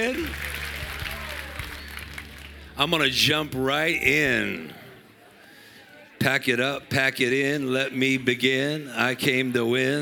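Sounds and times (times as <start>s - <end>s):
audience clapping: 0.0s - 3.2s
speech: 2.8s - 4.8s, 6.2s - 9.9s.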